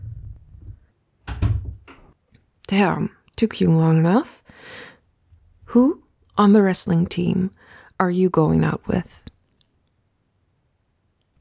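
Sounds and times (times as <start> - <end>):
low rumble: 0.0 - 1.9
heavy wooden thuds of a door opening: 0.0 - 2.1
speech: 2.7 - 4.9, 5.7 - 9.3.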